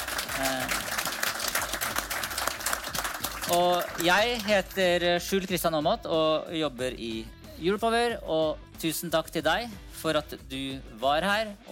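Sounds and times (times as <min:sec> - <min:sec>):
audience applause: 0:00.0 - 0:04.6
speech: 0:03.5 - 0:11.6.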